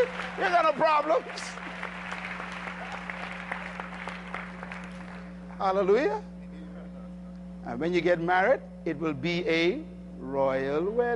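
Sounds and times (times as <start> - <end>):
speech: 0.0 - 1.8, 5.6 - 6.3, 7.6 - 11.1
audience clapping loudly: 0.0 - 5.7.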